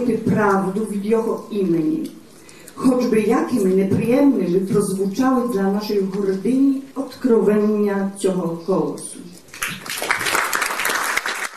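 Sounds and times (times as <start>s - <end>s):
speech: 0.0s - 2.2s, 2.8s - 9.3s
Ukrainian and Polish audience applauding at a gathering in Warsaw: 9.5s - 11.5s.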